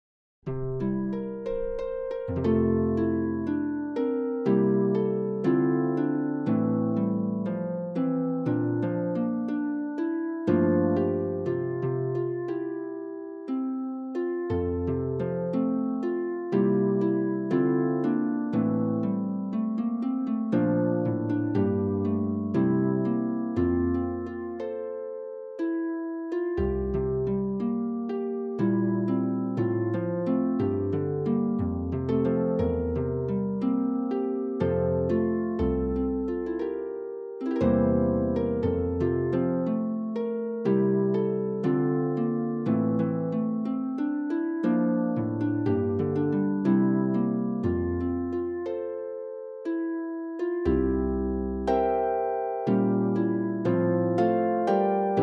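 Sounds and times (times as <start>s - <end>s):
harp playing a popular folk song: 0.5s - 55.2s.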